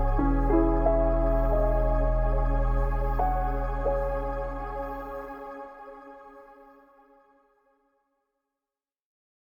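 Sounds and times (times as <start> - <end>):
relaxing instrumental music for studying: 0.0 - 7.4.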